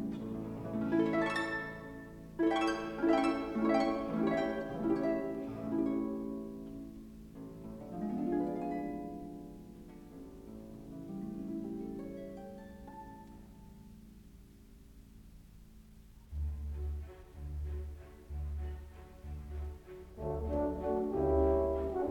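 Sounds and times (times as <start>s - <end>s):
harp with orchestra: 0.0s - 14.9s, 16.3s - 22.0s.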